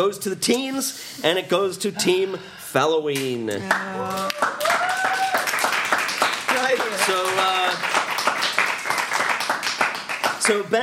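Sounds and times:
speech: 0.0 - 5.2, 10.5 - 10.8
applause: 3.7 - 10.7.

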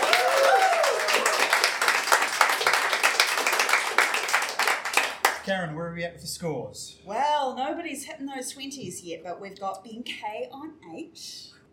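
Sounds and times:
people cheering: 0.0 - 5.1
crowd applauding: 0.0 - 5.4
speech: 5.5 - 11.6.

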